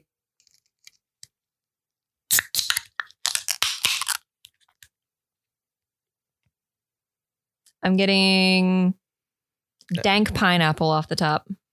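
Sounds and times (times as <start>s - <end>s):
beer can cracked open for a tasting: 2.3s - 4.3s
speech: 7.8s - 9.0s, 9.9s - 11.6s.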